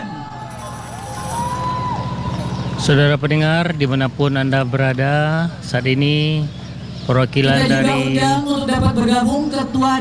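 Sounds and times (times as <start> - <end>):
crowd applause: 0.0 - 3.7
speech: 2.8 - 9.9.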